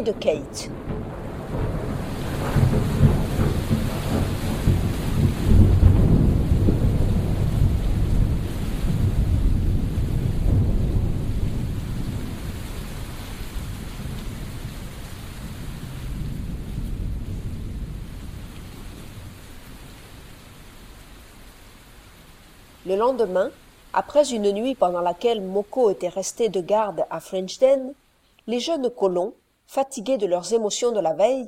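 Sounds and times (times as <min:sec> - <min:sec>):
speech: 0:00.0 - 0:00.9, 0:22.9 - 0:31.4
rain in a violent thunderstorm: 0:00.0 - 0:31.4
thunder in a violent thunderstorm: 0:00.7 - 0:19.5.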